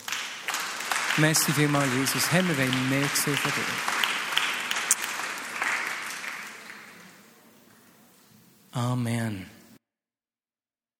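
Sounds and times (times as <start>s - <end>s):
audience applause: 0.0s - 7.4s
speech: 1.2s - 4.0s, 8.8s - 9.6s.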